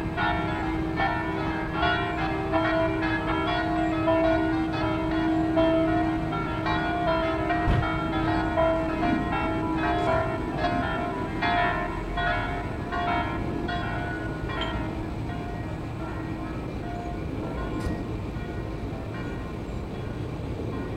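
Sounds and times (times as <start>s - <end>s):
bells ringing in Padova: 0.0s - 20.9s.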